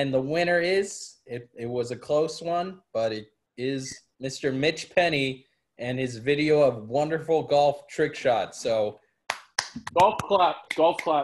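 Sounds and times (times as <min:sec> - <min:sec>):
speech: 0:00.0 - 0:09.0, 0:09.8 - 0:11.2
soft polite golf claps: 0:09.3 - 0:11.2.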